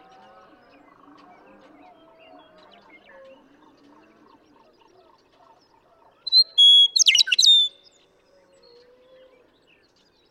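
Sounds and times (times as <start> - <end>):
western meadowlark singing: 6.3 - 7.9.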